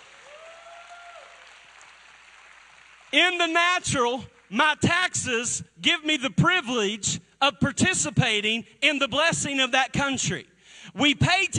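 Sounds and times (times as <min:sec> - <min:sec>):
audience clapping: 0:00.0 - 0:04.6
speech: 0:03.1 - 0:11.5.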